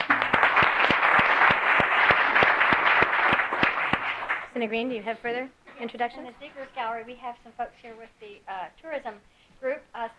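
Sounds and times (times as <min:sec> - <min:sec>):
applause in the Alaska legislative chamber in Juneau: 0:00.0 - 0:04.6
speech: 0:04.6 - 0:10.1.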